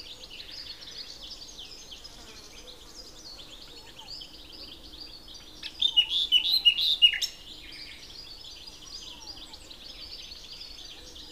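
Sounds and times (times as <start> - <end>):
common nightingale song: 0.0 - 11.3.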